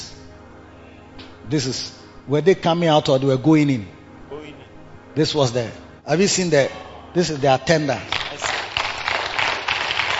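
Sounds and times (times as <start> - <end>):
speech: 1.2 - 4.0, 5.2 - 8.5
clapping: 8.1 - 10.1.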